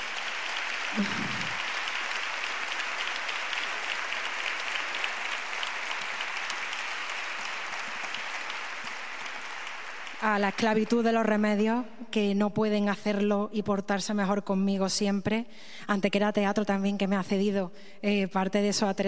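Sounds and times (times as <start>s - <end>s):
crowd applauding: 0.0s - 11.0s
speech: 0.9s - 1.4s, 10.3s - 19.0s.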